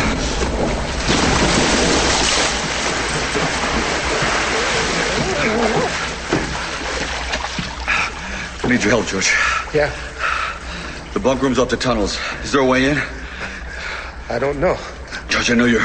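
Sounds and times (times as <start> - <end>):
person jumping into water and swimming through a flooded tunnel: 0.2 - 11.2
speech: 8.7 - 10.2, 11.1 - 13.2, 14.3 - 15.8.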